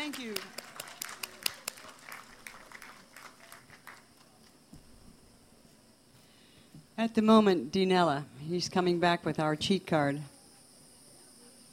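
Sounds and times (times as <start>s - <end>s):
audience applause: 0.0s - 4.5s
speech: 0.1s - 0.6s, 7.0s - 10.3s.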